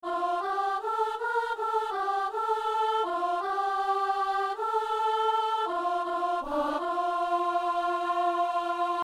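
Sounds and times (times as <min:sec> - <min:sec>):
soprano singing: 0:00.1 - 0:09.0.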